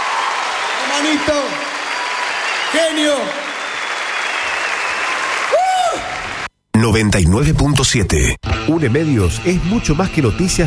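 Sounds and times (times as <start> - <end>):
applause: 0.0 - 6.5
speech: 1.0 - 1.8, 2.7 - 3.5, 6.8 - 10.6.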